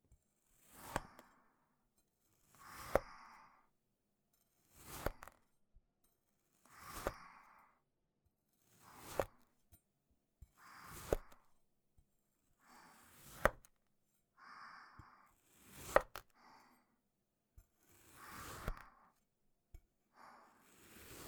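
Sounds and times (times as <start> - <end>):
cutting sand clay: 2.6 - 3.2, 4.7 - 5.4, 6.7 - 7.4, 8.7 - 9.4, 10.7 - 11.4, 13.1 - 13.7, 15.6 - 16.3, 17.9 - 19.0, 20.6 - 21.2.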